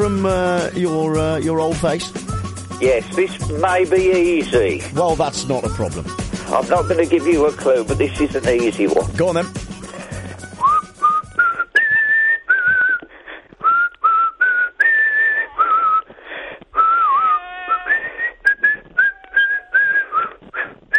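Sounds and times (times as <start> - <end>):
speech: 0.1 - 9.7
person whistling a tune: 10.4 - 16.1, 16.8 - 20.9.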